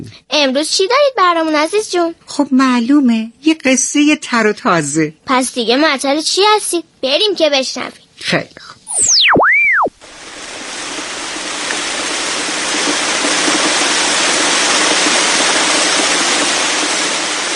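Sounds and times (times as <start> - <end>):
speech: 0.0 - 9.4
rain: 9.9 - 17.5.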